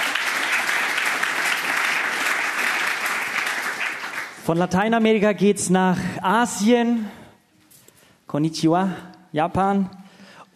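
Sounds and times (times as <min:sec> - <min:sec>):
audience applause: 0:00.0 - 0:04.4
speech: 0:04.5 - 0:07.2, 0:08.3 - 0:10.0.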